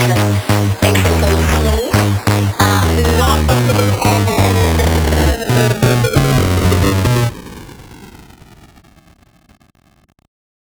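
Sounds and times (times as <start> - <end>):
sped up funk music: 0.0 - 8.0.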